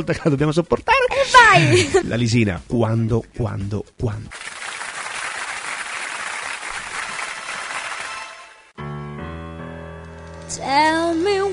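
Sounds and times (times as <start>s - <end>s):
speech: 0.0s - 4.4s
audience applause: 4.3s - 8.6s.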